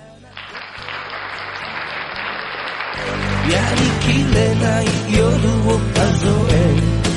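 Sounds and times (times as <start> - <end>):
applause: 0.3 - 4.4
speech: 3.0 - 7.0.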